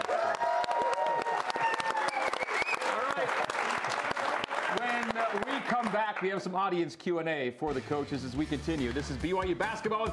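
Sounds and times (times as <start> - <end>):
studio audience applauding two basketball coaches: 0.0 - 6.6
speech: 5.7 - 10.1.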